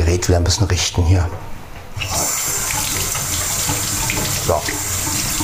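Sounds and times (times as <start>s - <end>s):
speech: 0.2s - 1.5s
tap water gushing over rinsed hands: 2.7s - 5.4s.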